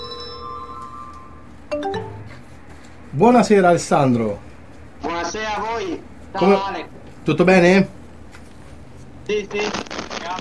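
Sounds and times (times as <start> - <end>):
electronic ringing tone of an incoming online call: 0.0 - 2.5
bright chiming notes: 0.0 - 2.6
speech: 3.1 - 4.5, 5.6 - 8.0, 9.3 - 9.9.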